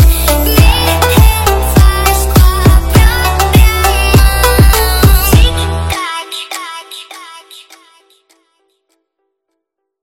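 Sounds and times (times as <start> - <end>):
sped-up montagem funk music: 0.0 - 6.2.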